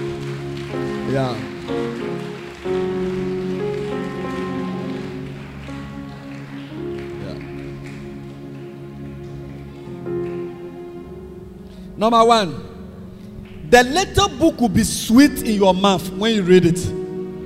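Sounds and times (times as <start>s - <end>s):
audience applause: 0.0s - 11.1s
speech: 0.7s - 2.0s, 12.0s - 12.7s, 13.7s - 17.0s.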